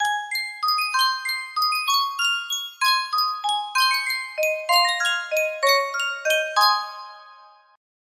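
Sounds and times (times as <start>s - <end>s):
Sankyo miniature music box: 0.0s - 7.8s.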